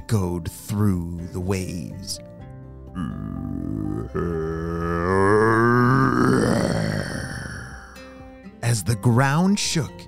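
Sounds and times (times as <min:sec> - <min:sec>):
speech: 0:00.1 - 0:02.3, 0:03.0 - 0:05.6, 0:08.7 - 0:10.0
person imitating monster growl: 0:02.9 - 0:08.0.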